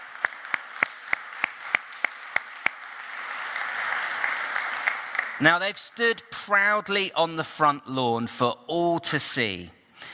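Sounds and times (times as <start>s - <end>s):
audience applause: 0.0s - 5.4s
speech: 5.4s - 10.1s.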